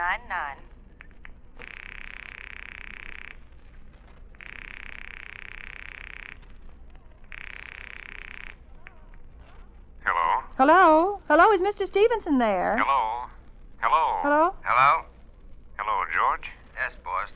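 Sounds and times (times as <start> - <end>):
faint hiss: 0.0 - 17.3
telephone line ringing: 1.0 - 12.8
speech: 10.6 - 13.0.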